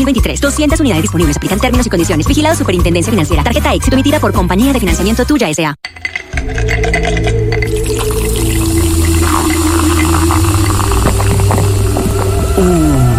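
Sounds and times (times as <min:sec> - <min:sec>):
speech: 0:00.0 - 0:07.4
cold Canada Dry ginger ale soda being poured: 0:06.4 - 0:13.1.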